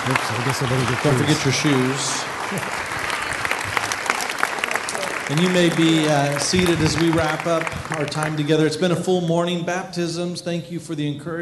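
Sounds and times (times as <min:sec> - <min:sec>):
speech: 0:00.0 - 0:03.0, 0:05.3 - 0:11.4
audience applauding: 0:00.0 - 0:08.9.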